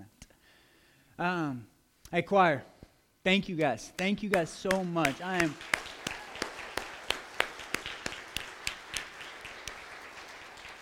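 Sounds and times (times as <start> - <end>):
speech: 1.2 - 5.8
hand claps: 3.6 - 10.8.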